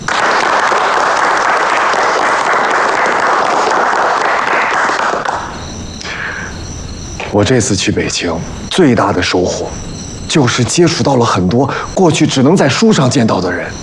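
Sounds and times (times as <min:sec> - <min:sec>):
audience applause welcoming a speaker: 0:00.0 - 0:05.5
speech: 0:07.3 - 0:13.8.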